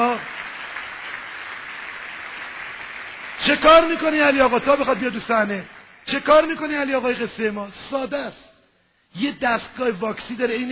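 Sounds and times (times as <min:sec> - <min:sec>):
audience applause for a performer coming onto the stage: 0:00.0 - 0:06.5
speech: 0:03.4 - 0:08.4, 0:09.1 - 0:10.6.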